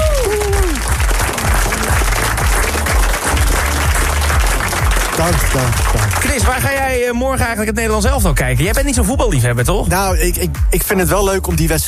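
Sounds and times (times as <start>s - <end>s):
audience applause: 0.0s - 7.0s
low rhythmic beat: 0.0s - 11.8s
speech: 5.2s - 11.8s.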